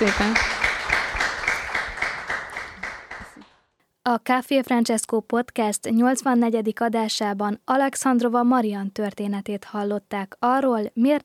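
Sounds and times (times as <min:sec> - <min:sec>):
speech: 0:00.0 - 0:00.5, 0:04.1 - 0:11.2
audience applause: 0:00.0 - 0:03.6.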